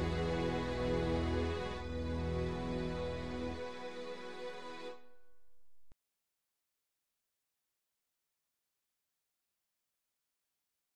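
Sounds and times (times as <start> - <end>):
choir singing: 0.0 - 5.0.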